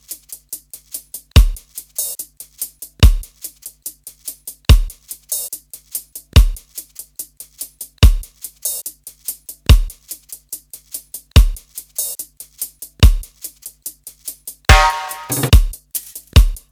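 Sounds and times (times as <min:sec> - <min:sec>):
drum kit beat at 144 bpm: 0:01.3 - 0:04.0, 0:04.6 - 0:05.7, 0:06.4 - 0:06.7, 0:08.0 - 0:08.4, 0:09.7 - 0:10.1, 0:11.4 - 0:11.7, 0:13.0 - 0:13.3, 0:14.7 - 0:16.7.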